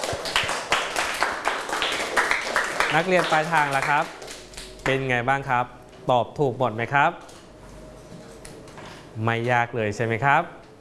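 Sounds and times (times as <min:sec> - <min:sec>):
students clapping: 0:00.0 - 0:04.8
speech: 0:02.9 - 0:04.2, 0:04.8 - 0:07.3, 0:09.2 - 0:10.6.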